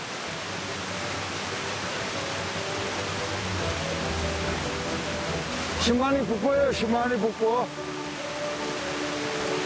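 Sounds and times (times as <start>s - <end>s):
waterfall rushing water: 0.0s - 9.6s
speech: 5.8s - 7.9s.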